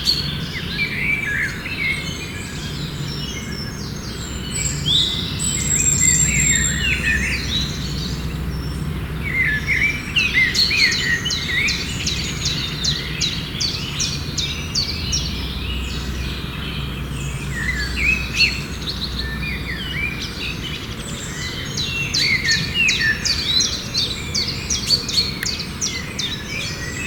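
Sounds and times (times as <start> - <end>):
birds singing with chirps and whistled phrases: 0.0 - 27.0.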